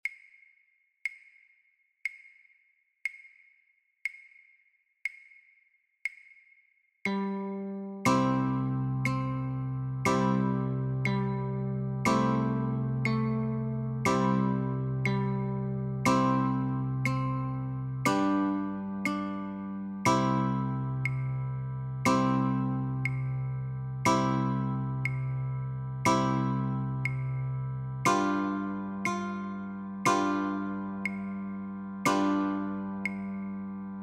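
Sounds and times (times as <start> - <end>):
guitar notes and chords: 7.1 - 34.0.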